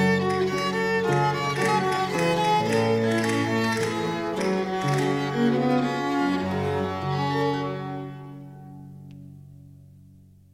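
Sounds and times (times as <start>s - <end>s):
ricercare in G minor: 0.0s - 7.6s.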